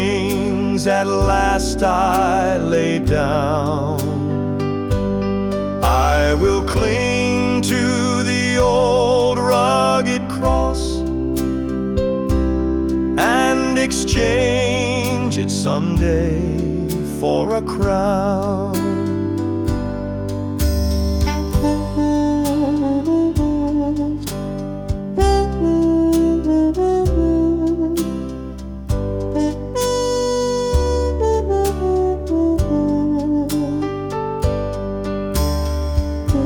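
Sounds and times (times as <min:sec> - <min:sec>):
man singing a hymn: 0:00.0 - 0:04.5, 0:05.8 - 0:11.2, 0:13.2 - 0:19.1
piano: 0:00.0 - 0:36.4.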